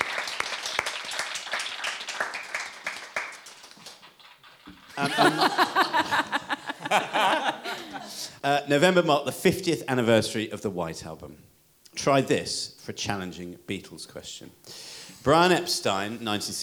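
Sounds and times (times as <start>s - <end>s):
audience applause: 0.0s - 6.1s
laughter: 4.9s - 8.3s
speech: 5.0s - 16.6s.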